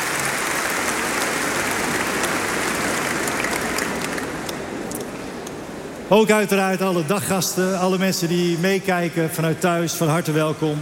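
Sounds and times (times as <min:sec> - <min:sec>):
applause from campers and holiday-home guests: 0:00.0 - 0:04.7
speech: 0:06.1 - 0:10.7.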